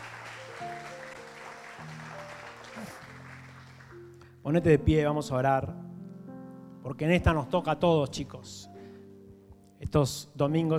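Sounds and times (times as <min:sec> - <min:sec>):
audience applause: 0:00.0 - 0:04.1
speech: 0:04.4 - 0:05.9, 0:06.8 - 0:08.7, 0:09.9 - 0:10.7.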